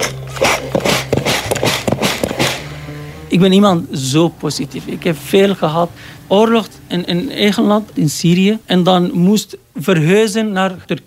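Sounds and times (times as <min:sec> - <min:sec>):
sewing machine running: 0:00.0 - 0:02.8
speech: 0:03.3 - 0:11.0.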